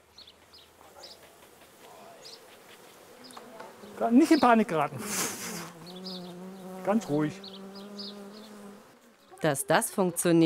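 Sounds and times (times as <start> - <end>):
honeybees buzzing at a beehive: 0.0 - 10.4
speech: 4.0 - 5.2, 6.9 - 7.5, 9.4 - 10.4.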